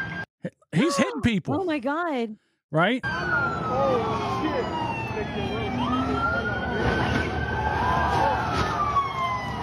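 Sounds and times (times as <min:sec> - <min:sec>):
speech: 0:00.4 - 0:07.1
police car siren wailing: 0:03.0 - 0:09.6
traffic noise: 0:03.0 - 0:09.6.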